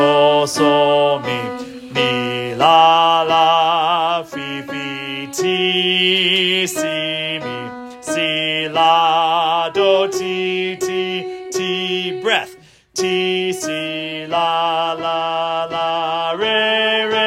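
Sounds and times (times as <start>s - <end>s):
alto singing solfege: 0.0s - 17.2s.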